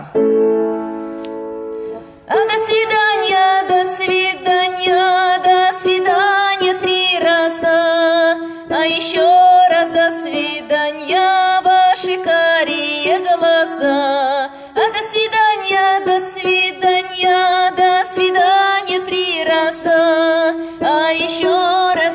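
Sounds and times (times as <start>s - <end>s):
soprano singing: 0.3s - 22.1s.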